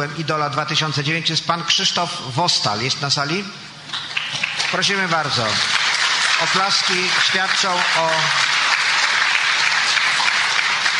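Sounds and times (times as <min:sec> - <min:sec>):
speech: 0:00.0 - 0:04.1, 0:04.7 - 0:05.8, 0:06.4 - 0:08.5
audience applause: 0:04.0 - 0:10.9.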